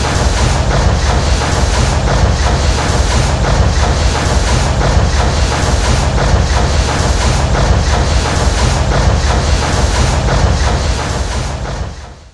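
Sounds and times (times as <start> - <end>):
steam engine: 0.0 - 12.3.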